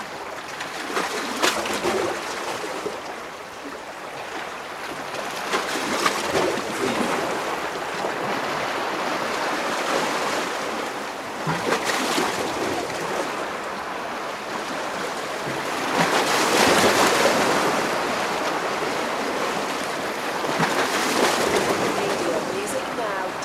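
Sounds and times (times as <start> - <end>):
waves between rocks: 0.0 - 23.4.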